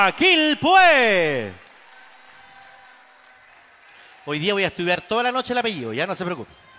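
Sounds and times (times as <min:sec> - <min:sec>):
speech: 0:00.0 - 0:01.6, 0:04.2 - 0:06.6
audience applauding: 0:00.0 - 0:05.4.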